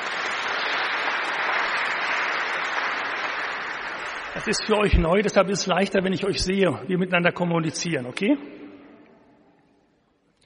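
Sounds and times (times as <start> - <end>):
audience applauding: 0.0 - 5.4
speech: 4.4 - 8.6.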